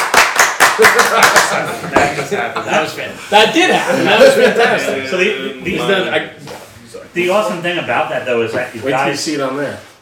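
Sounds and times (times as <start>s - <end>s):
audience clapping: 0.0s - 2.2s
speech: 0.8s - 6.5s, 7.1s - 9.9s
voices and chuckles: 1.0s - 6.0s.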